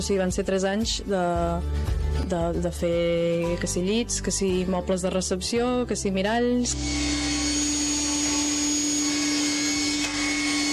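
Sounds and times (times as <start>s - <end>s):
speech: 0.0s - 7.3s
industrial saw motor roar: 6.7s - 10.7s.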